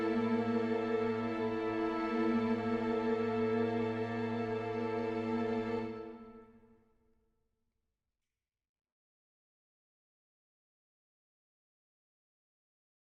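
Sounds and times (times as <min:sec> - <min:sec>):
orchestra playing: 0:00.0 - 0:06.3.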